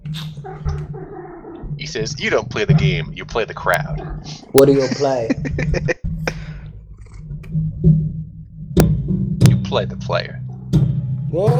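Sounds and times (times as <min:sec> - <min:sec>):
vibrating spring: 0:00.0 - 0:11.5
speech: 0:01.8 - 0:05.9, 0:09.8 - 0:10.4, 0:11.3 - 0:11.5
laughter: 0:01.8 - 0:06.6.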